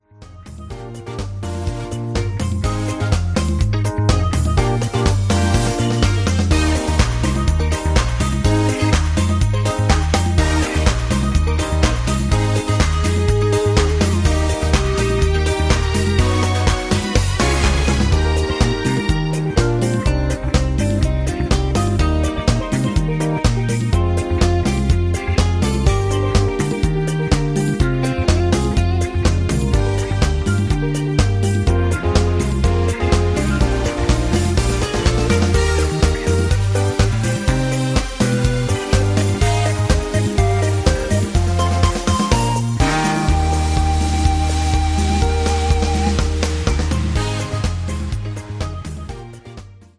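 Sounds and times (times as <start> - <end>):
hoedown instrumental music: 0.0 - 49.9.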